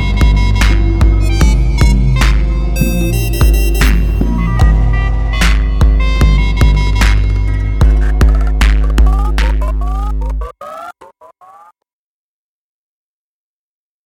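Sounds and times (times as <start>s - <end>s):
dramatic robot electro mood music: 0.0s - 10.9s.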